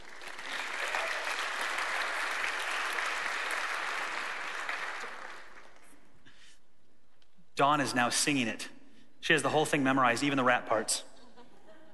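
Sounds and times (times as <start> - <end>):
audience applause welcoming a couple onto the stage: 0.0 - 5.9
speech: 7.6 - 11.1.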